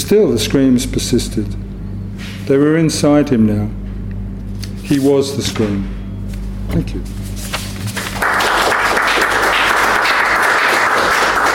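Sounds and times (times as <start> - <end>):
speech: 0.1 - 1.6, 2.2 - 3.8, 4.9 - 6.0, 6.7 - 7.2
audience applause: 8.0 - 11.5.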